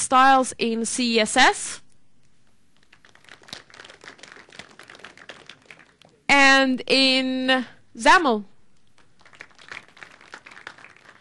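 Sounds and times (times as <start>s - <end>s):
speech: 0.0s - 1.8s, 6.6s - 8.5s
audience clapping: 2.7s - 6.3s, 8.8s - 11.1s.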